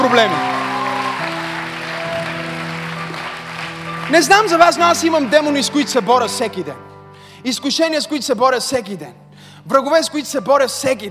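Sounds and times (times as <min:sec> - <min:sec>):
weak applause from church audience: 0:00.0 - 0:05.8
speech: 0:00.1 - 0:00.5, 0:04.1 - 0:11.1.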